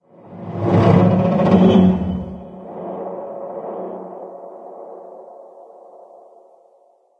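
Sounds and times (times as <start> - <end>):
metal creaking: 0.3 - 2.6.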